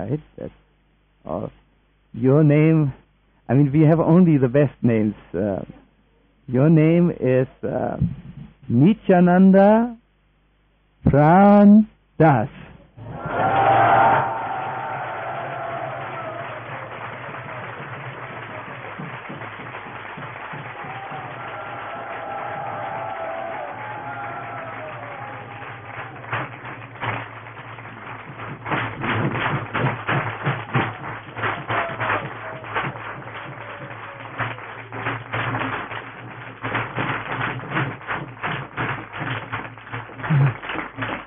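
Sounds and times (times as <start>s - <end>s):
speech: 0.0s - 0.6s, 1.2s - 5.8s, 6.5s - 10.0s, 11.0s - 13.3s
whoops: 13.0s - 19.2s, 20.4s - 26.5s, 30.4s - 35.1s
enthusiastic audience applause: 13.0s - 41.2s.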